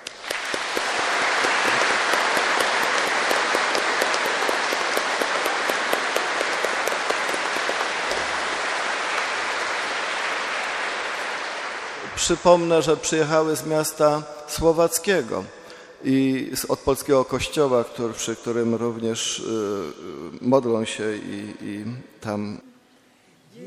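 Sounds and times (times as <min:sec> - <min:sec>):
audience applause: 0:00.0 - 0:12.8
speech: 0:12.3 - 0:22.7.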